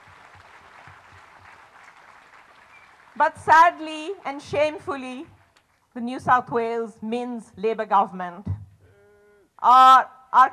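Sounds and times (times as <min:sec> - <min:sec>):
audience applause: 0:00.0 - 0:03.3
speech: 0:03.2 - 0:05.4, 0:06.0 - 0:08.6, 0:09.6 - 0:10.5.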